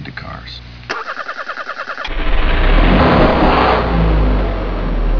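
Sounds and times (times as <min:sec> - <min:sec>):
cars: 0:02.1 - 0:05.1.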